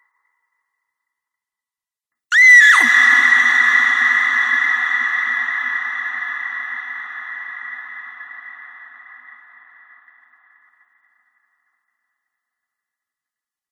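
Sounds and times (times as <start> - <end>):
scream cathedral drone: 2.4 - 10.4.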